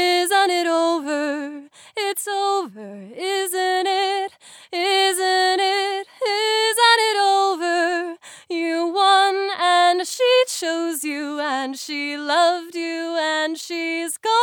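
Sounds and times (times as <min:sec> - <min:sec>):
woman singing: 0:00.0 - 0:14.4.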